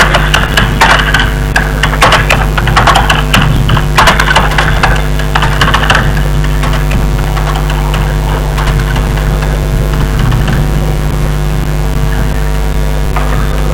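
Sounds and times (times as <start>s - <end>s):
keyboard: 0.0s - 13.7s.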